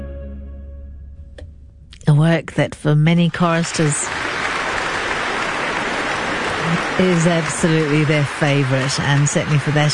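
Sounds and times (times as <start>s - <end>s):
speech: 2.2s - 4.3s, 7.0s - 9.9s
concert audience applauding vocal soloists and a radio chorus: 3.3s - 9.9s.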